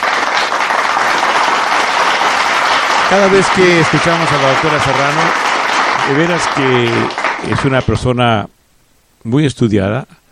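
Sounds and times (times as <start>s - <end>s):
audience applause: 0.0s - 8.1s
speech: 3.1s - 8.6s, 9.2s - 10.2s.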